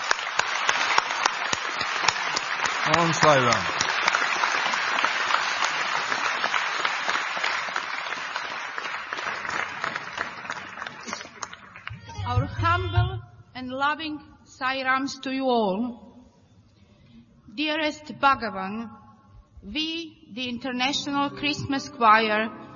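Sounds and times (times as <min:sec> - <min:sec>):
audience applause for singers: 0:00.0 - 0:12.1
speech: 0:02.9 - 0:03.8, 0:13.9 - 0:16.0, 0:17.6 - 0:19.0, 0:19.6 - 0:22.6.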